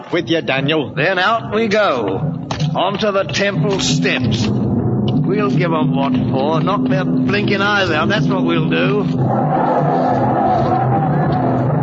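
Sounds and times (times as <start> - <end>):
speech: 0.1 - 4.6, 5.3 - 10.3
large crowd yelling: 6.6 - 11.8.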